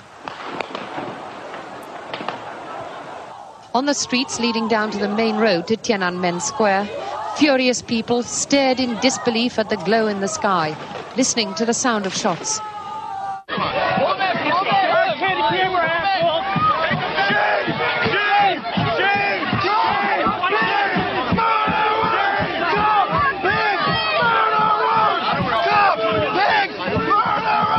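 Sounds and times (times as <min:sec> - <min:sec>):
protest crowd chanting in Beijing and New York City: 0:02.1 - 0:27.7
speech: 0:03.8 - 0:12.7.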